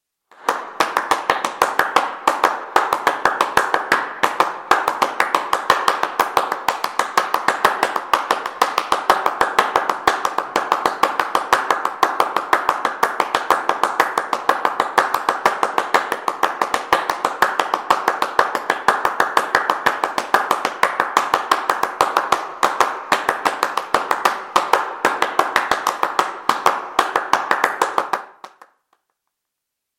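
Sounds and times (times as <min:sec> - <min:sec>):
rhythmic hand clapping: 0:00.3 - 0:29.3.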